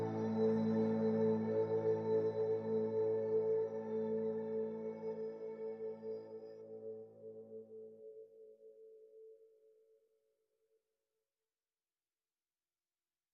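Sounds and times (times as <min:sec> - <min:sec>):
synth pads: 0:00.0 - 0:07.3.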